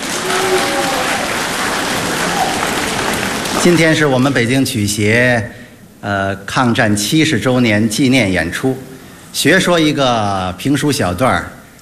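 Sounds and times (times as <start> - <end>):
audience applause: 0.0 - 4.1
speech: 3.6 - 11.6.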